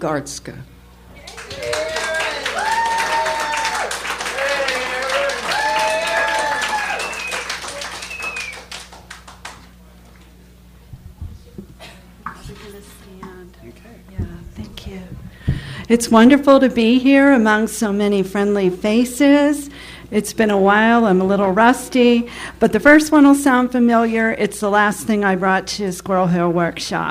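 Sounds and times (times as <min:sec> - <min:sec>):
speech: 0:00.0 - 0:00.8, 0:15.9 - 0:27.0
audience applause: 0:01.2 - 0:09.7.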